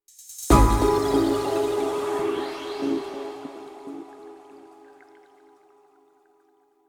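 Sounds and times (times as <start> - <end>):
Indian rain: 0.2 - 5.7.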